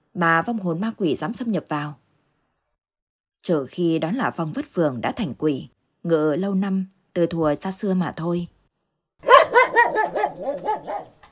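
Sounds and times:
speech: 0:00.2 - 0:02.0, 0:03.4 - 0:08.6, 0:10.4 - 0:11.0
dog barking loudly near midnight: 0:09.2 - 0:11.3.

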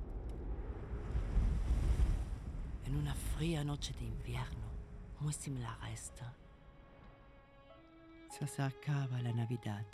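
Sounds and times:
wind blowing in a scene from the film Krampus: 0:00.0 - 0:06.8
speech: 0:02.9 - 0:06.4, 0:08.3 - 0:09.9.

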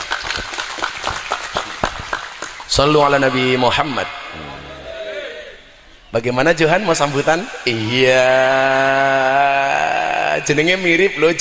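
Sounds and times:
scattered hand clapping from an audience thanking a speaker: 0:00.0 - 0:03.0
speech: 0:02.7 - 0:04.2, 0:06.1 - 0:11.3.

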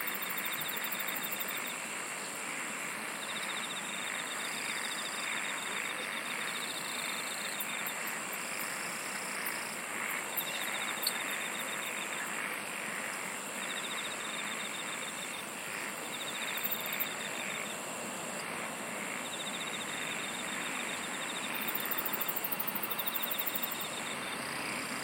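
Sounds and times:
hissy background: 0:00.0 - 0:25.0
insects trilling: 0:00.0 - 0:25.0.

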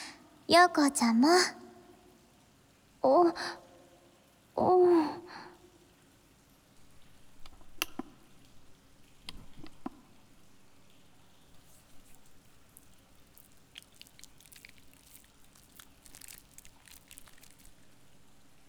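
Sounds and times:
speech: 0:00.5 - 0:01.6, 0:03.0 - 0:03.6
hands working body soap into a lather: 0:11.6 - 0:17.7.

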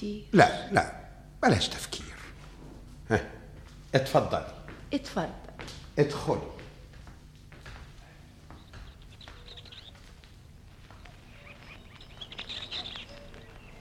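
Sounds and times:
speech: 0:00.0 - 0:02.0, 0:03.1 - 0:05.4, 0:06.0 - 0:06.6
small birds chirping in a garden: 0:08.1 - 0:13.8.

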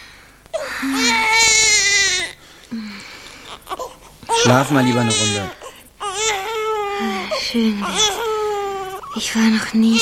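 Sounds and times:
baby crying: 0:00.6 - 0:02.4, 0:03.5 - 0:10.0
speech: 0:00.8 - 0:01.4, 0:04.4 - 0:05.6, 0:07.0 - 0:08.2, 0:09.2 - 0:10.0.

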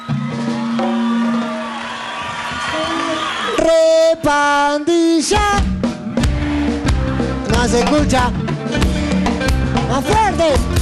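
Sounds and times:
audience applause and cheering: 0:00.0 - 0:04.3, 0:05.6 - 0:07.7, 0:09.0 - 0:10.8
speech: 0:04.2 - 0:05.7, 0:07.6 - 0:08.9, 0:09.9 - 0:10.8.

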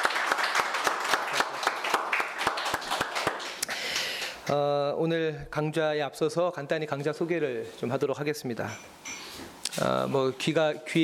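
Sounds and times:
audience applause of encouragement at a lecture session: 0:00.0 - 0:04.3
speech: 0:04.5 - 0:09.0, 0:09.8 - 0:11.0.

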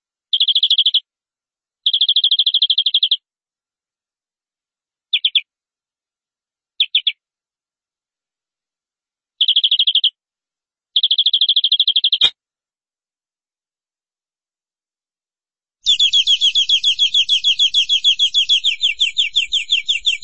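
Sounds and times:
canary song: 0:00.3 - 0:01.1, 0:01.8 - 0:03.2, 0:05.1 - 0:05.5, 0:06.8 - 0:07.2, 0:09.4 - 0:10.2, 0:11.0 - 0:12.4, 0:15.8 - 0:20.2.

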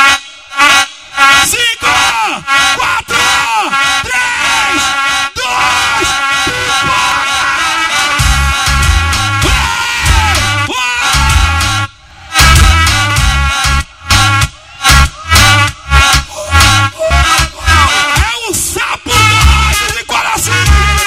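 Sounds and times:
large crowd yelling and cheering at a live DJ show in Icoaraci: 0:00.0 - 0:21.0
heavy low thumps: 0:08.2 - 0:17.9.

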